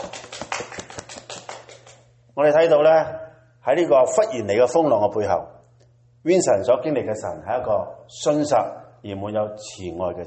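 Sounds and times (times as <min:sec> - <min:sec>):
audience applause: 0:00.0 - 0:02.0
speech: 0:02.4 - 0:05.6, 0:06.2 - 0:10.2.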